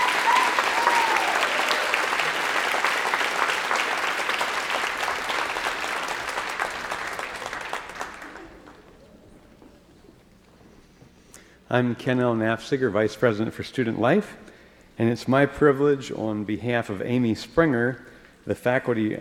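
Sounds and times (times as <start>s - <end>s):
audience applause: 0.0s - 10.1s
speech: 11.7s - 19.2s.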